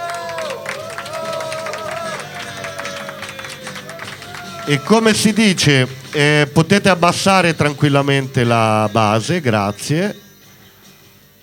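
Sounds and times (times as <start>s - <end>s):
audience applause: 0.0s - 6.9s
speech: 4.7s - 10.2s.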